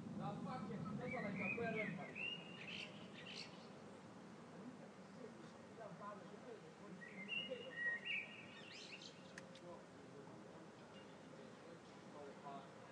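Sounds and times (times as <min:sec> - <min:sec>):
locals talking about their cars: 0:00.2 - 0:02.2, 0:04.5 - 0:08.3, 0:09.4 - 0:12.9
blackbird singing at dusk: 0:01.0 - 0:03.8, 0:06.9 - 0:09.4.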